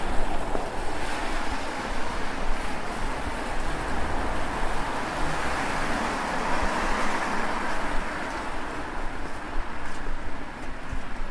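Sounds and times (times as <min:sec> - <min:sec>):
rain pattering: 0:00.0 - 0:01.7
low rumble of city traffic: 0:00.0 - 0:11.3.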